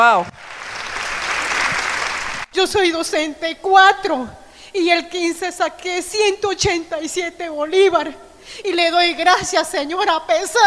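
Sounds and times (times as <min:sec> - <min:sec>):
speech: 0:00.0 - 0:00.5, 0:02.6 - 0:10.6
audience applause: 0:00.3 - 0:02.5.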